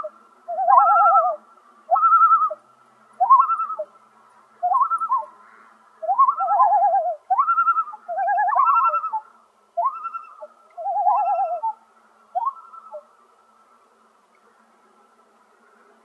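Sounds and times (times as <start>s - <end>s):
common loon calling: 0.0s - 2.6s, 3.2s - 3.9s, 4.6s - 13.1s.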